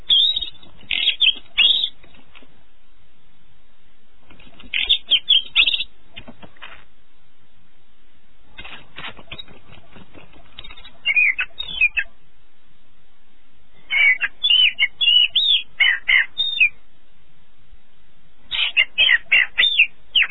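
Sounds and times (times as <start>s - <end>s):
canary singing a high warbling trill in the early morning: 0.0s - 2.0s, 4.6s - 5.9s, 8.6s - 12.2s, 13.9s - 16.8s, 18.5s - 20.2s.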